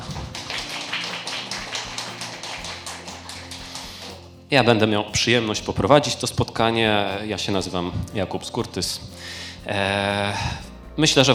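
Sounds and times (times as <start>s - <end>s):
audience applause: 0.0s - 4.2s
speech: 4.5s - 11.3s.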